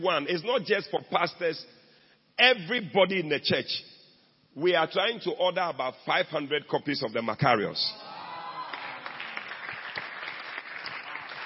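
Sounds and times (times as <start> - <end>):
speech: 0.0 - 1.8, 2.4 - 4.0, 4.6 - 8.1
audience clapping: 8.4 - 11.4.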